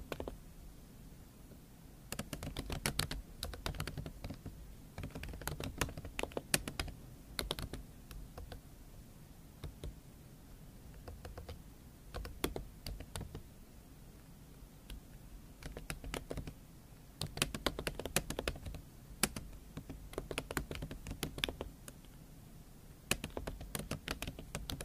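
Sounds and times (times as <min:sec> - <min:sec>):
tapping and scratching clicks: 0:02.1 - 0:08.6, 0:10.9 - 0:13.4, 0:15.6 - 0:16.6, 0:17.2 - 0:22.0, 0:23.1 - 0:24.8.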